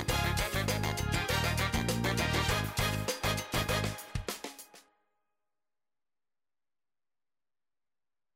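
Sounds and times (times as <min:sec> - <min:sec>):
salsa music with vocals: 0:00.0 - 0:04.7.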